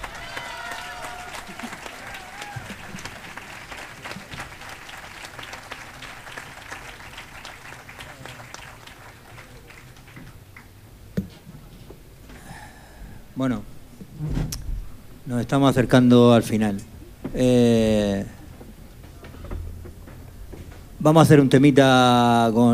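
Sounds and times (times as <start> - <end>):
audience applause: 0.0 - 10.8
speech: 13.4 - 14.4, 15.3 - 18.3, 21.0 - 22.7.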